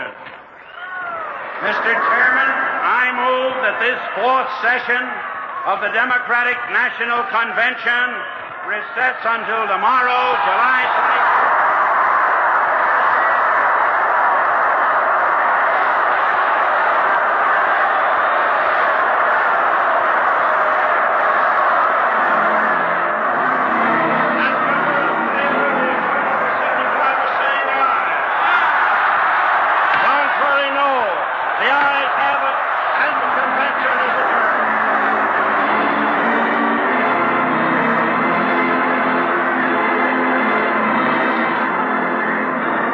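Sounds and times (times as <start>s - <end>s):
convention crowd roaring: 0.0s - 6.0s, 6.8s - 42.9s
speech: 1.6s - 11.4s.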